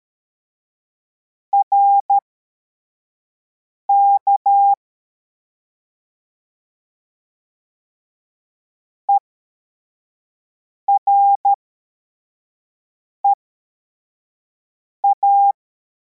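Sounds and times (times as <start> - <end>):
CW morse code beeps: 1.6 - 2.2, 4.0 - 4.8, 10.9 - 11.6, 15.0 - 15.6.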